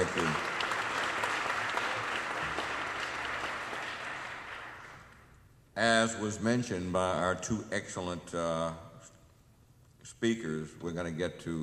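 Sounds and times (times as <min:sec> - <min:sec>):
audience applause: 0:00.0 - 0:05.2
speech: 0:05.8 - 0:08.9, 0:10.2 - 0:11.6.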